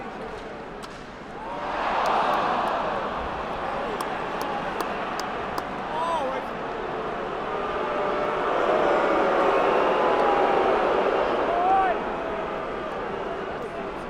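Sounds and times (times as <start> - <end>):
large crowd outrage at a hockey game: 1.4 - 14.0.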